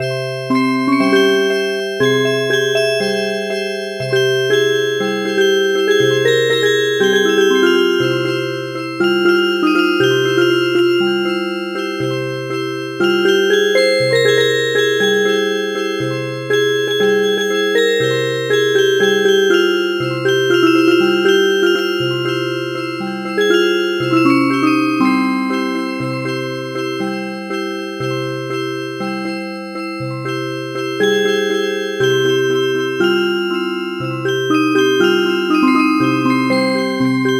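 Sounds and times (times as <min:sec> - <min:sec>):
music box: 0:00.0 - 0:37.3.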